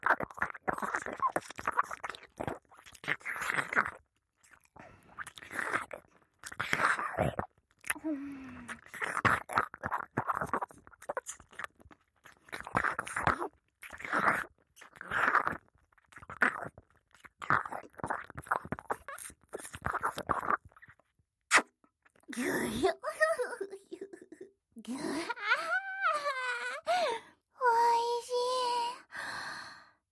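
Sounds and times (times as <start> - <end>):
ear licking with a long tongue: 0.0 - 22.2
kissing: 21.5 - 21.8
woman talking teasingly: 22.3 - 26.4, 27.6 - 29.1.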